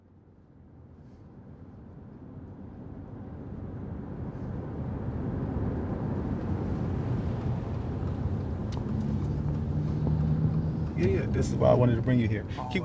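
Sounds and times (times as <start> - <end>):
car driving through a West Philadelphia neighborhood, engine and road rumble: 0.0 - 12.8
speech: 11.4 - 12.8.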